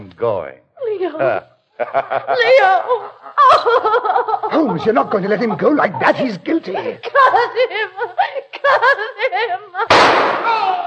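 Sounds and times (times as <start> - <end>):
speech: 0.2 - 10.8
laughter: 1.2 - 10.0
gunshot in a radio drama: 9.9 - 10.8.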